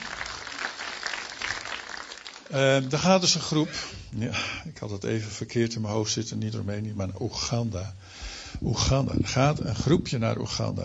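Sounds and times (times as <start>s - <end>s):
audience applause: 0.0s - 3.6s
speech: 2.5s - 10.8s.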